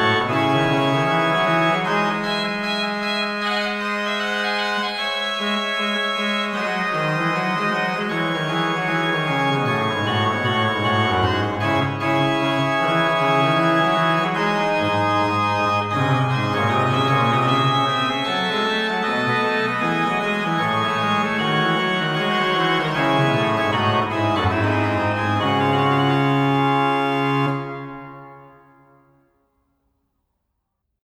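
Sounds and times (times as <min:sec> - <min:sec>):
pipe organ playing with trumpet bass stop: 0:00.0 - 0:28.9.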